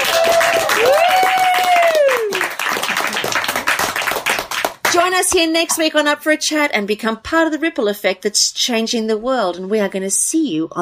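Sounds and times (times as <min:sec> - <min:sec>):
thunderous audience applause: 0:00.0 - 0:05.0
speech: 0:05.3 - 0:10.8.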